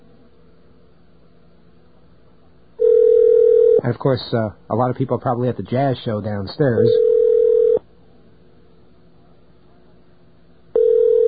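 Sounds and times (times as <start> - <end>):
speech: 3.9 - 7.1
telephone dialing tones: 7.0 - 7.8, 10.8 - 11.2.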